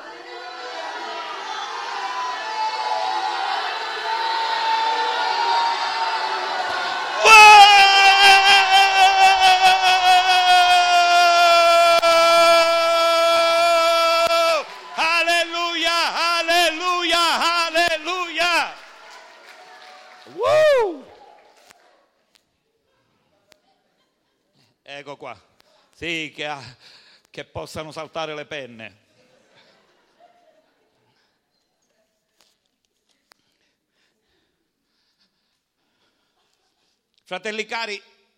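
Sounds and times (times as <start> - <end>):
crowd roaring: 0.0 - 19.4
speech: 26.0 - 29.0, 37.3 - 38.2.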